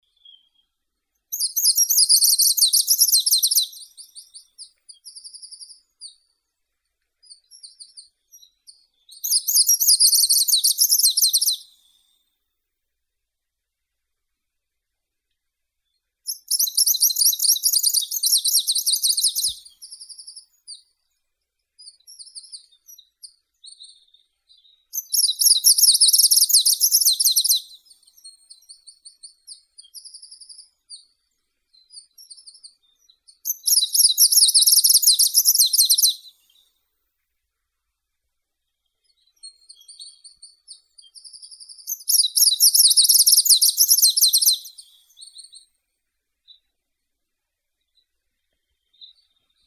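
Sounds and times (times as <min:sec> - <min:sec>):
greenish warbler Phylloscopus trochiloides singing: 0:01.3 - 0:05.8, 0:07.3 - 0:11.7, 0:16.3 - 0:20.5, 0:24.6 - 0:28.7, 0:32.0 - 0:36.6, 0:39.4 - 0:45.6.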